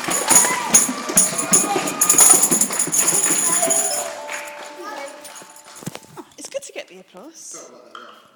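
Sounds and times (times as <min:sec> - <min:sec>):
metallophone: 0:00.0 - 0:06.0.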